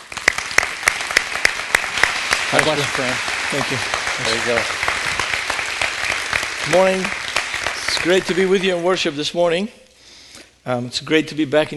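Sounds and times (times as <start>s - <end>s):
audience applause: 0.0s - 9.3s
speech: 2.5s - 4.9s, 6.6s - 7.2s, 7.9s - 9.8s, 10.6s - 11.7s.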